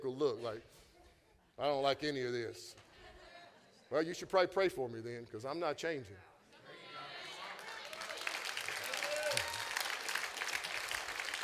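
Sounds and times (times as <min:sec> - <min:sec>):
speech: 0:00.0 - 0:00.8, 0:01.6 - 0:02.8, 0:03.9 - 0:06.3
audience clapping: 0:07.4 - 0:11.4.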